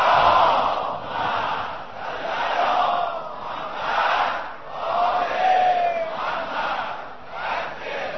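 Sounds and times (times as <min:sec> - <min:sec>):
large crowd loudly chanting salawat in unison: 0:00.0 - 0:08.1.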